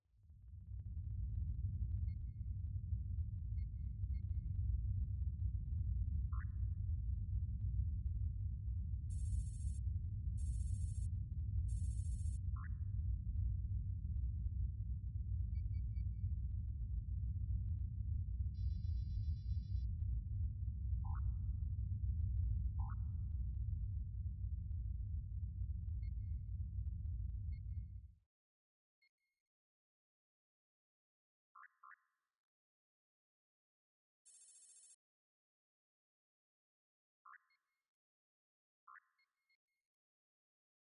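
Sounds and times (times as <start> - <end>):
interior ambience: 0.4 - 28.0.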